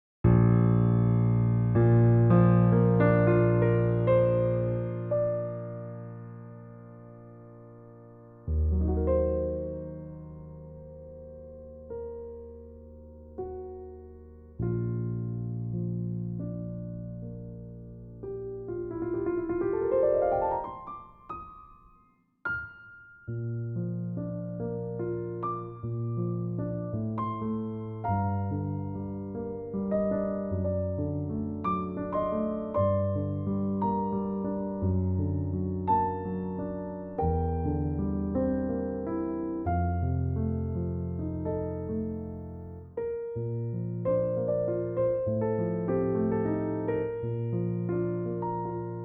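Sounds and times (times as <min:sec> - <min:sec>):
piano music: 0:00.2 - 0:49.0.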